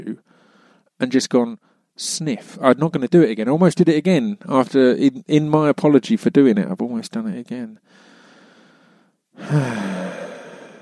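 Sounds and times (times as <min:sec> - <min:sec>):
speech: 0:01.0 - 0:08.1, 0:09.4 - 0:10.0
person sighing close to the ear: 0:09.4 - 0:10.8.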